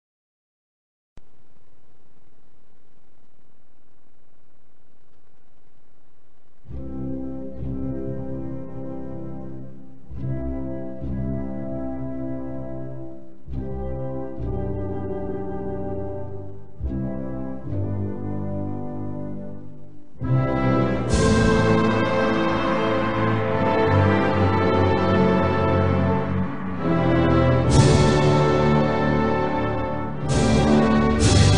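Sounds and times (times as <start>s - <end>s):
national anthem: 6.7s - 31.5s.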